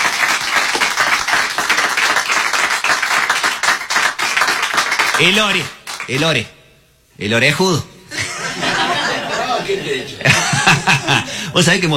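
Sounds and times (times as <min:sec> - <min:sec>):
audience applause: 0:00.0 - 0:06.3
speech: 0:05.2 - 0:06.6, 0:07.2 - 0:07.9, 0:09.7 - 0:11.9
laughter: 0:08.1 - 0:11.6.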